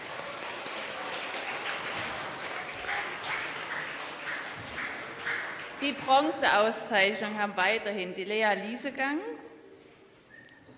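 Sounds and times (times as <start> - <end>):
audience applause: 0.0 - 6.3
speech: 5.8 - 9.4.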